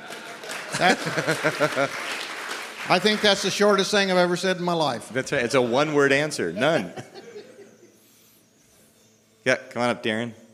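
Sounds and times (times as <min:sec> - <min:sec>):
laughter: 0:00.0 - 0:03.9, 0:05.2 - 0:08.2
audience applause: 0:00.0 - 0:04.3
speech: 0:00.8 - 0:02.1, 0:02.9 - 0:07.1, 0:09.4 - 0:10.4.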